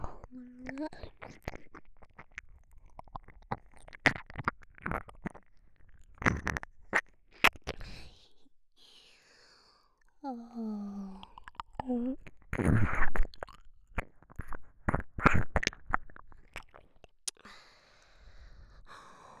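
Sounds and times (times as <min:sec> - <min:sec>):
ear licking sounds on the right: 0:00.1 - 0:08.4, 0:11.1 - 0:17.4.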